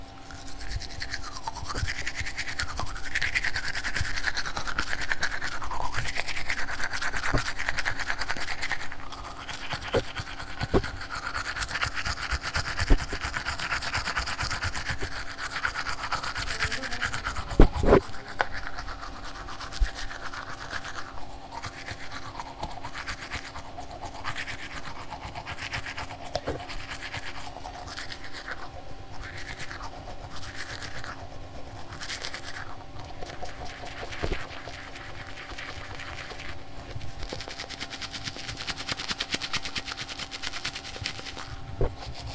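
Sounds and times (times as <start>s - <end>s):
brushing teeth with a toothbrush: 0.0s - 42.3s.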